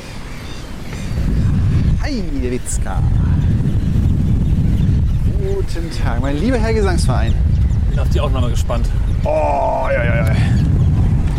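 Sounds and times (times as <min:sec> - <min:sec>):
strong wind blowing: 0:00.0 - 0:11.3
speech: 0:02.1 - 0:03.4, 0:05.6 - 0:10.7.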